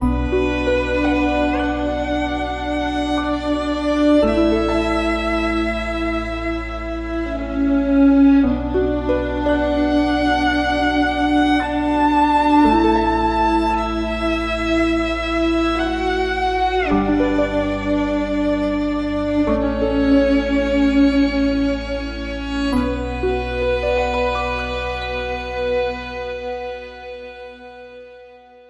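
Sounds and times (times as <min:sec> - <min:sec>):
orchestral legend music: 0:00.0 - 0:28.6.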